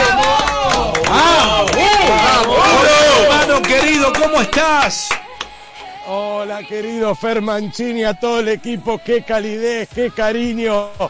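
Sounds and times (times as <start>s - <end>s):
applause: 0.0s - 5.6s
speech: 4.7s - 5.2s, 6.1s - 11.0s.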